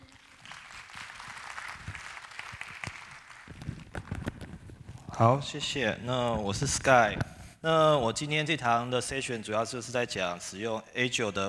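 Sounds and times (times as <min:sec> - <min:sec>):
audience applause: 0:00.0 - 0:04.2
speech: 0:05.2 - 0:11.4.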